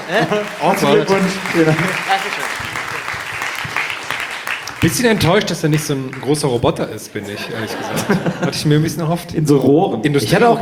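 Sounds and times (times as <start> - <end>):
laughter: 0.0 - 6.2, 6.8 - 9.1
audience applause thanking a guest: 0.0 - 6.6
speech: 0.1 - 2.8, 4.8 - 10.6.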